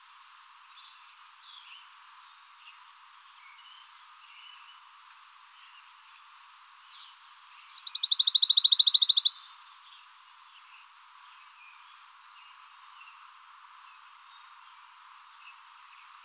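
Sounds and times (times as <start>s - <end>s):
pine warbler singing in coastal Louisiana: 0.7s - 13.2s.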